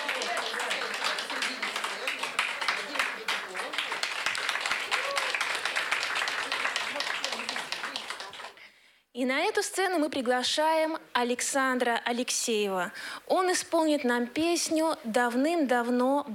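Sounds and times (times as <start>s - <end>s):
audience applause: 0.0s - 8.6s
speech: 9.2s - 16.3s.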